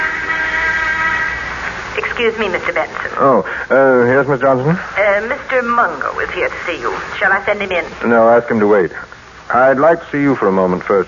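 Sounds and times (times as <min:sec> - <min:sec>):
inter-office phone buzzing: 0:00.0 - 0:02.9
speech: 0:02.2 - 0:11.0.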